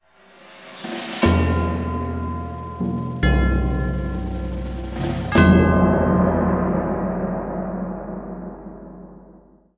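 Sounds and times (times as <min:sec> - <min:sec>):
battle defeat jingle: 0:01.2 - 0:09.0.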